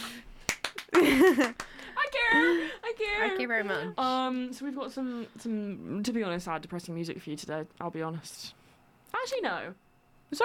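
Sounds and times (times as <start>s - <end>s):
clapping: 0.5s - 2.0s
laughter: 0.9s - 4.0s
speech: 1.1s - 10.4s.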